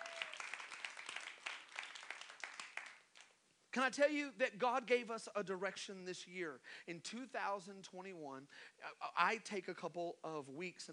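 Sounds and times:
audience hand clapping: 0.0s - 3.4s
speech: 3.7s - 10.9s.

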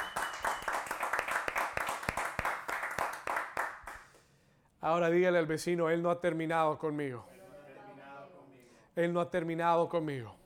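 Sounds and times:
audience applause: 0.0s - 4.0s
speech: 4.8s - 7.3s, 9.0s - 10.4s.

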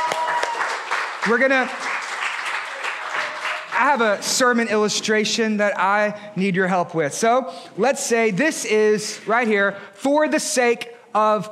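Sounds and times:
audience applause: 0.0s - 4.7s
speech: 1.2s - 1.9s, 3.8s - 11.5s.

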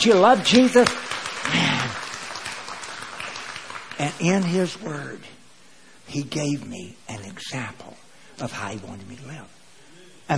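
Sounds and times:
speech: 0.0s - 1.6s, 4.0s - 5.4s, 6.1s - 9.6s
audience clapping hands: 0.0s - 4.9s.

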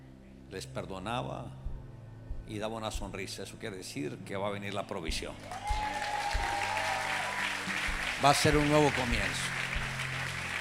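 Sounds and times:
speech: 0.5s - 1.6s, 2.5s - 5.8s, 8.2s - 9.6s
audience applause: 5.5s - 10.5s.

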